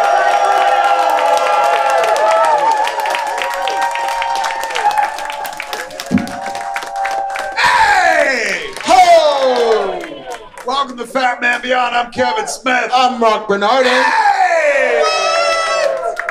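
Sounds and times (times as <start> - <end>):
whoops and shouting voices: 0.0 - 10.6, 13.8 - 16.2
convention crowd cheering and applauding at a San Diego Comic-Con 2023 panel: 0.0 - 11.2, 14.4 - 16.2
speech: 11.7 - 14.2.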